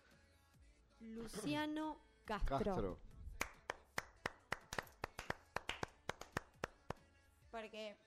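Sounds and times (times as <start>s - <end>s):
speech: 1.0s - 3.1s, 7.6s - 8.0s
clapping: 3.4s - 7.0s.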